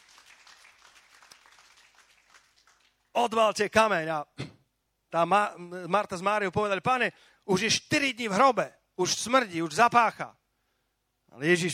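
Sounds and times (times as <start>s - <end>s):
audience applauding: 0.0s - 3.1s
speech: 3.2s - 4.4s, 5.1s - 10.4s, 11.3s - 11.7s.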